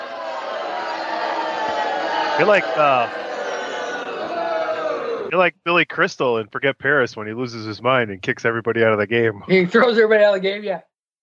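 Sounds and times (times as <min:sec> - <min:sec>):
studio audience booing: 0:00.0 - 0:05.4
speech: 0:02.4 - 0:03.2, 0:05.3 - 0:10.9.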